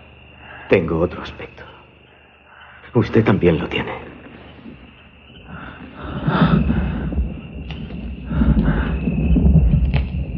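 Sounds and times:
speech: 0.7s - 1.8s, 2.9s - 4.2s
heavy breathing: 2.0s - 2.9s, 4.2s - 9.4s.

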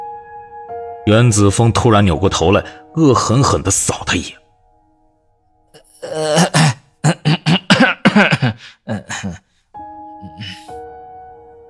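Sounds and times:
speech: 1.1s - 4.4s
voice acting out a man's rough coughing: 5.8s - 9.5s, 10.2s - 10.7s.

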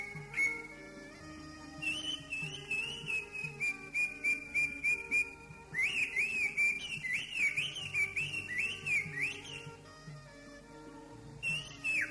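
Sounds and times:
greater green leafbird song: 0.0s - 0.8s, 1.8s - 9.7s, 11.4s - 12.0s.

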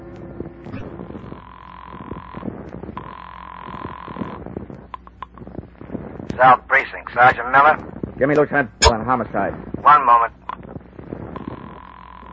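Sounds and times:
low rumbling background: 0.0s - 12.3s
telephone call ringing through: 0.8s - 5.4s, 11.4s - 12.3s
speech: 6.4s - 10.4s.

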